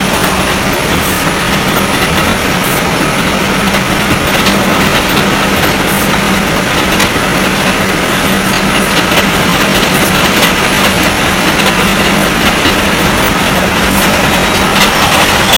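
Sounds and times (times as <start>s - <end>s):
train running: 0.0s - 15.5s.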